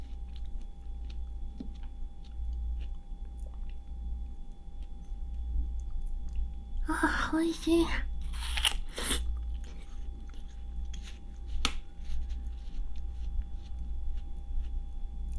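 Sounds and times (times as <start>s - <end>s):
quiet chewing of fruit: 0.0s - 15.3s
speech: 6.9s - 8.1s
seed cracking between teeth: 8.2s - 9.2s
crunchy bites of fruit: 8.2s - 9.8s.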